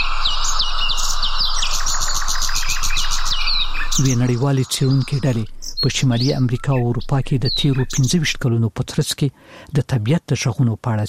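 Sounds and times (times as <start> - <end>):
birdsong outdoors in nature: 0.0 - 8.6
speech: 4.0 - 11.0.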